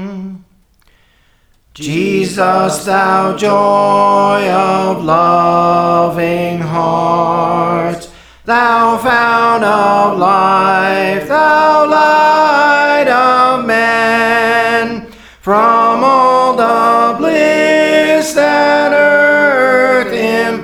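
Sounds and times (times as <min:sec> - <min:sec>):
soprano singing a hymn: 0:01.7 - 0:20.6.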